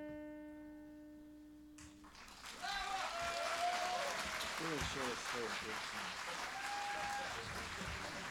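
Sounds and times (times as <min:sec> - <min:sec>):
audience applause: 0:02.0 - 0:08.2.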